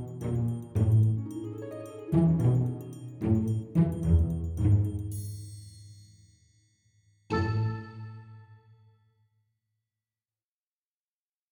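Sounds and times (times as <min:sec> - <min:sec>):
drums and percussion: 0:00.0 - 0:06.8.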